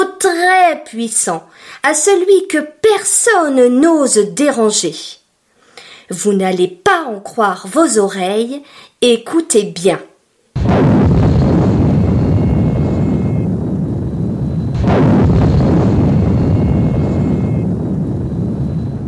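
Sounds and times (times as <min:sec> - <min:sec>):
speech: 0:00.5 - 0:05.2, 0:06.1 - 0:10.1
volcano rumbling and erupting: 0:10.6 - 0:19.0.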